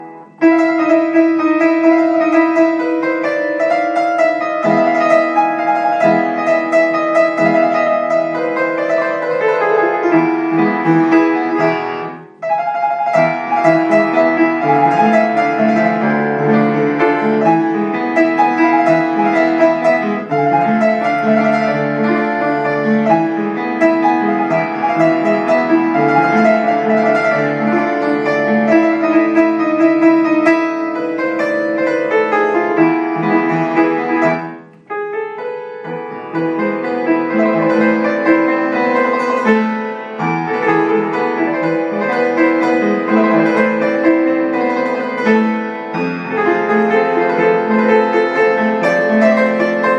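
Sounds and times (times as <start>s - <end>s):
piano: 0.0s - 49.9s.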